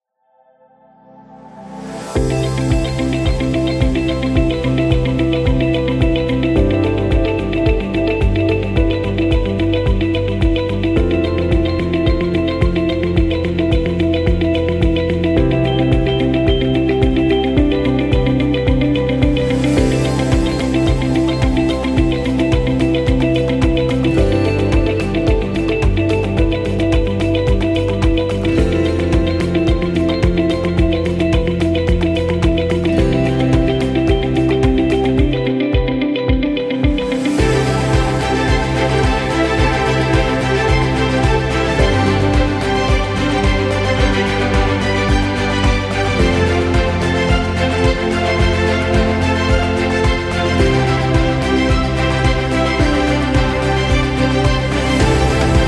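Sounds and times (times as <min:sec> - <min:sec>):
medicine background music: 0:00.3 - 0:55.6.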